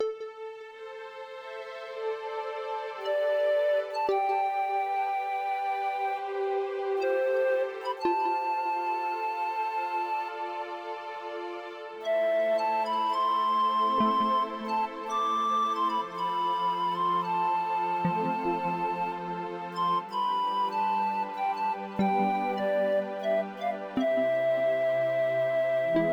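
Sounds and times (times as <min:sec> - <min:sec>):
lullaby music: 0:00.0 - 0:26.1.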